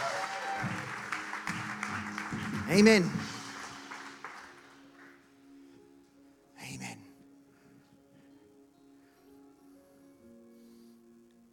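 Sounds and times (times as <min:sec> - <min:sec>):
audience clapping hands: 0:00.0 - 0:05.4
speech: 0:02.7 - 0:03.2.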